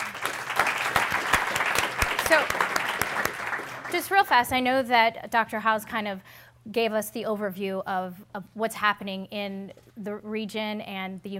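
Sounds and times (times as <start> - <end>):
audience applause welcoming panelists: 0.0 - 4.2
speech: 2.3 - 2.7, 3.9 - 11.3.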